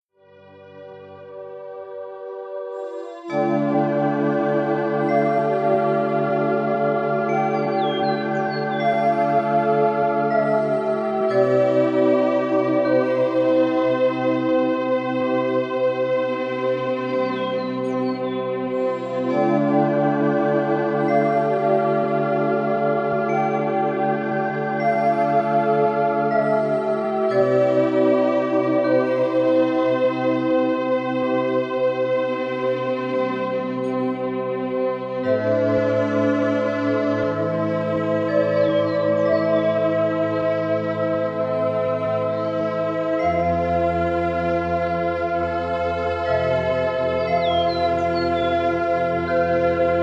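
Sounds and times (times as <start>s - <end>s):
relaxation music mix at 432 Hz: 0.0s - 50.0s.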